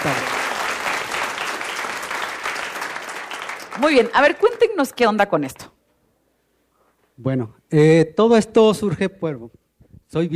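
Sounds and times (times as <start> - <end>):
speech: 0.0 - 0.3, 3.8 - 5.7, 7.2 - 10.3
audience applause: 0.0 - 4.8.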